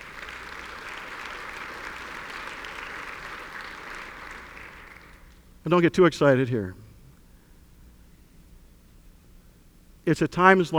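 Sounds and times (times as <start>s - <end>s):
audience applause: 0.0s - 6.5s
speech: 5.6s - 6.8s, 10.1s - 10.7s.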